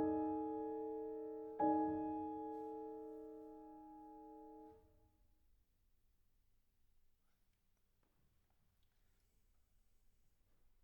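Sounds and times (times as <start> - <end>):
piano sonatina: 0.0 - 4.8.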